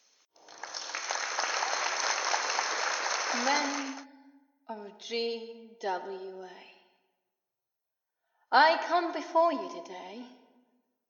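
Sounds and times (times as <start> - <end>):
crowd applauding in Madeline Square: 0.4 - 4.0
speech: 3.4 - 4.0, 4.7 - 6.7, 8.5 - 10.4.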